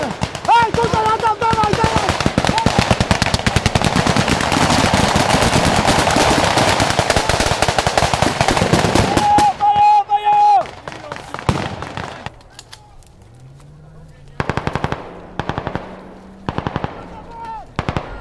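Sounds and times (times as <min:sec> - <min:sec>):
soldiers shouting: 0:00.0 - 0:03.2, 0:08.9 - 0:13.0, 0:16.1 - 0:18.2
gunfire exchange: 0:00.0 - 0:09.6, 0:14.4 - 0:18.2.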